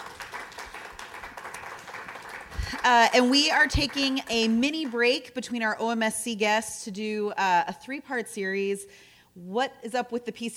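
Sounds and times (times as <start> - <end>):
crowd applauding: 0.0 - 4.9
speech: 2.8 - 10.5.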